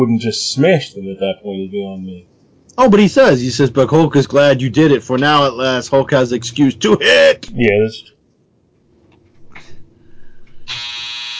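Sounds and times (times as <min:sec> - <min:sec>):
speech: 0:00.0 - 0:08.1
clothes dryer end-of-cycle buzzer: 0:10.7 - 0:11.3.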